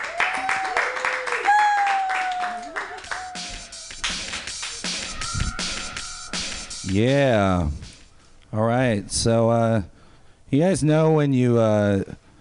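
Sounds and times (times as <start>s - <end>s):
whooping cheers: 0.0s - 4.0s, 4.8s - 6.7s
crowd clapping: 0.0s - 5.2s
shrill whistles: 1.5s - 6.9s
speech: 6.9s - 7.8s, 8.5s - 9.9s, 10.5s - 12.2s.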